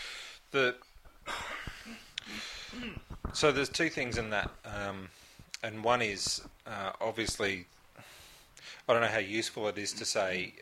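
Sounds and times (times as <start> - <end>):
speech: 0.5 - 0.9, 2.7 - 10.5
throat clearing: 1.3 - 3.1.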